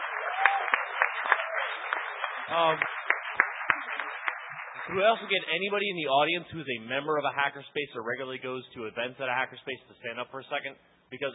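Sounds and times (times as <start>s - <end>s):
audience applause: 0.0s - 5.6s
speech: 2.5s - 3.0s, 4.9s - 11.3s.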